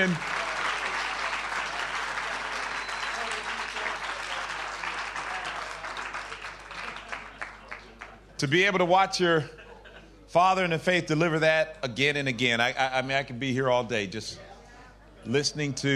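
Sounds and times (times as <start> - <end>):
speech: 0.0 - 0.4, 8.4 - 9.6, 10.3 - 14.5, 15.2 - 15.9
audience applause: 0.0 - 8.2
laughter: 9.2 - 10.3.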